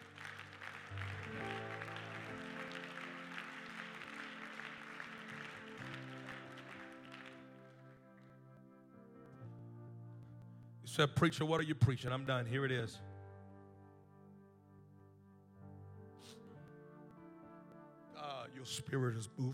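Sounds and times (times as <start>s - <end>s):
audience clapping hands: 0.0s - 8.3s
sustained organ chords: 0.0s - 19.5s
speech: 11.0s - 13.1s, 18.8s - 19.5s.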